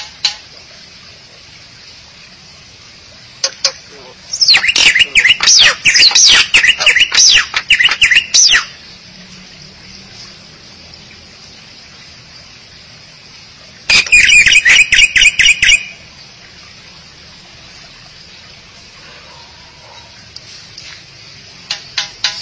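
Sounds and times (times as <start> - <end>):
starling or myna song: 4.3 - 8.7, 13.9 - 16.0.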